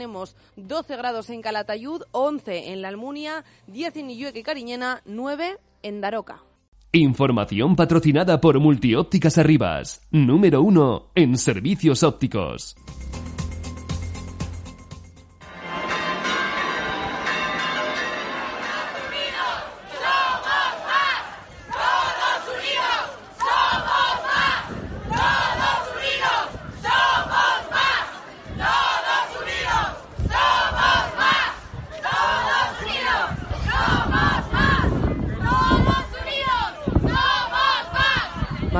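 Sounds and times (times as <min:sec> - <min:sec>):
speech: 0:00.0 - 0:13.3
crowd of more than 2,500 protesters chanting in Brea de Aragón: 0:15.4 - 0:38.7.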